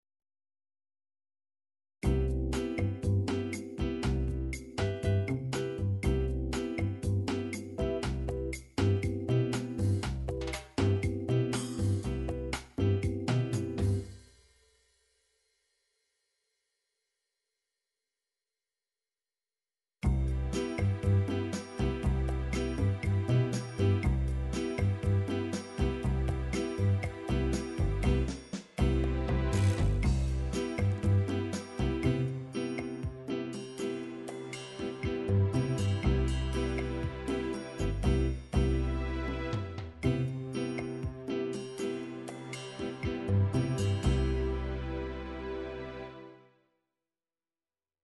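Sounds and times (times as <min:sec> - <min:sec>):
bossa nova MIDI music: 0:02.0 - 0:14.1, 0:20.1 - 0:45.4.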